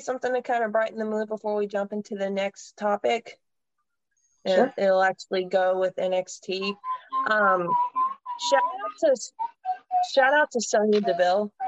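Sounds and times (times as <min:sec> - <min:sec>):
speech: 0:00.0 - 0:03.4, 0:04.4 - 0:11.6
person whistling in the background: 0:06.6 - 0:10.3.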